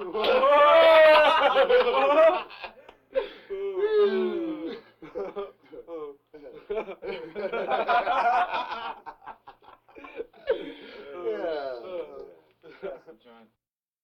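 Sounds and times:
laughter: 0.0s - 2.9s, 4.7s - 13.4s
breathing vocal effects: 10.5s - 11.2s.

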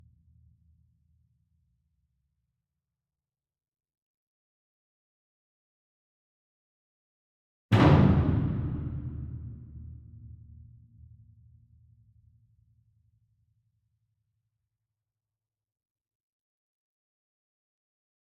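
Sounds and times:
distant concert bass drum flam: 7.7s - 10.0s.

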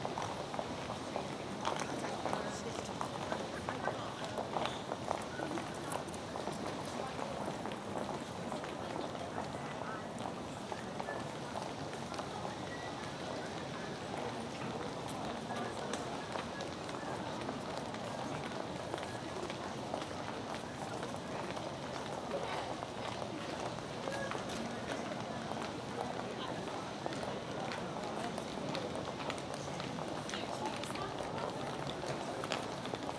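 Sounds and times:
exterior atmosphere ambience with people: 0.0s - 33.1s
rush hour footsteps outdoors: 29.8s - 33.1s.

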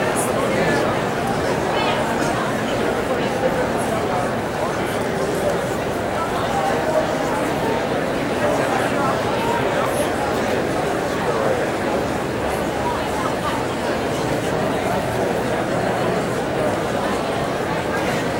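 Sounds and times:
busy indoor crowd walla in a public hall: 0.0s - 18.3s.

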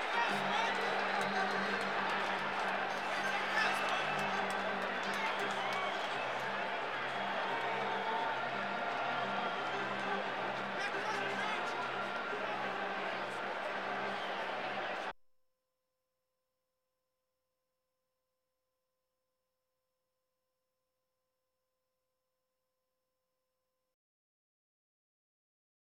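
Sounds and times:
sports crowd: 0.0s - 15.2s.

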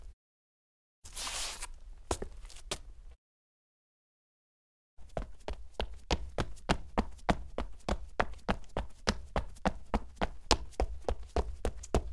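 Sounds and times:
clean sneaker footsteps on cement: 1.1s - 2.9s, 5.1s - 12.1s.

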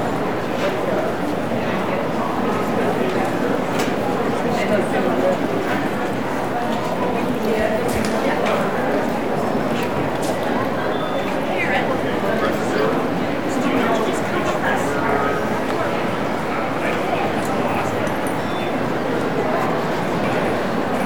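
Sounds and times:
light crowd walla in a large office lobby: 0.0s - 21.0s.

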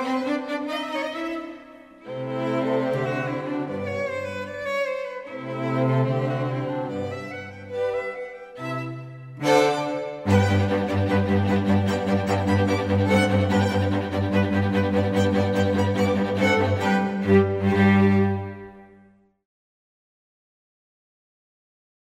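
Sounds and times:
royalty free classical music: 0.0s - 19.3s.

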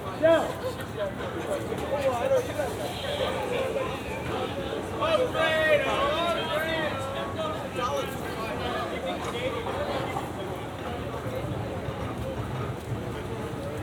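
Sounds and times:
New York exterior street ambience with people: 0.0s - 13.8s.

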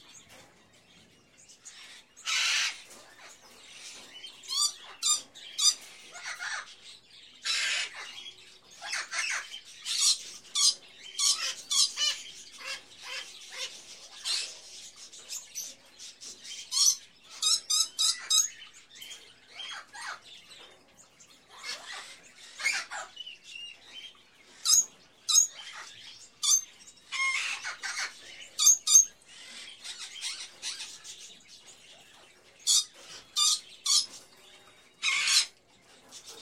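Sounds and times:
various birds in a pet shop: 0.0s - 36.4s.

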